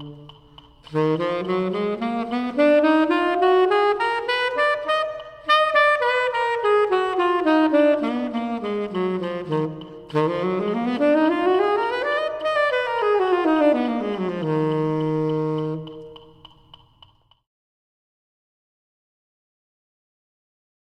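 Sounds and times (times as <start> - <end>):
harmonic minor scales: 0.0 - 16.3.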